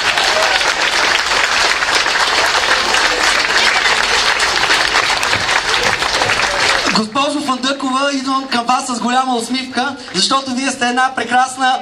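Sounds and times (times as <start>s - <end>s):
faint crowd murmur: 0.0s - 6.9s
audience applause: 0.0s - 7.1s
speech: 7.0s - 11.8s.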